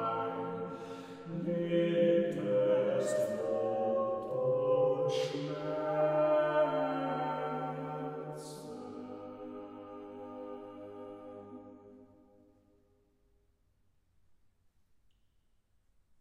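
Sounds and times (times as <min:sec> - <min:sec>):
chorale sung by four voices: 0:00.0 - 0:12.2.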